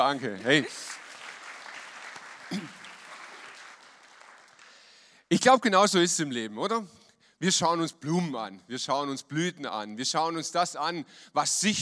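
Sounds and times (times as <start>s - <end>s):
speech: 0.0s - 1.0s, 2.5s - 2.8s, 5.3s - 11.8s
audience applause: 0.0s - 5.0s.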